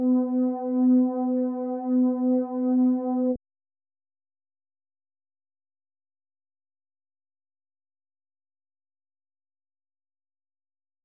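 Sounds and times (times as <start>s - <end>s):
synth pad: 0.0s - 3.4s.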